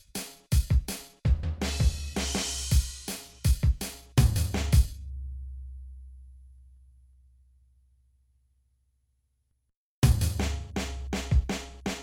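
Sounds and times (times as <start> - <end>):
drum hits: 0.5 - 4.9, 10.1 - 12.0.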